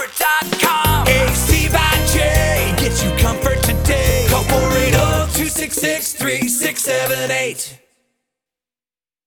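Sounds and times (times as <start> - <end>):
HVAC heating cooling jingle: 0.0 - 7.4.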